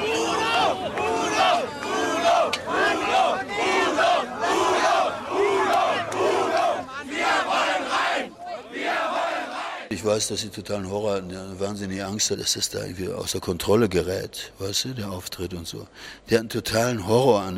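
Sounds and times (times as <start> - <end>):
crowd of fans shouting and chanting outside: 0.0 - 9.9
speech: 10.0 - 17.5.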